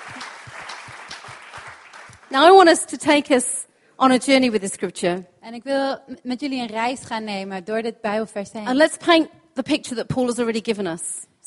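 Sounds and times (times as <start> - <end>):
crowd clapping: 0.0 - 2.8
speech: 2.3 - 11.4.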